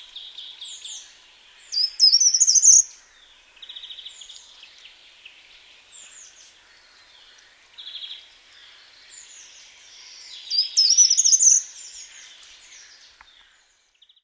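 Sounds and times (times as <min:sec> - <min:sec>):
short-toed treecreeper calling: 0:00.0 - 0:14.2.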